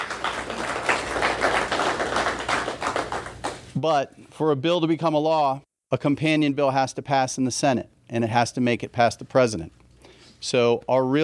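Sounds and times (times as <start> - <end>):
audience clapping: 0.0 - 3.8
speech: 3.8 - 9.8, 10.4 - 11.2.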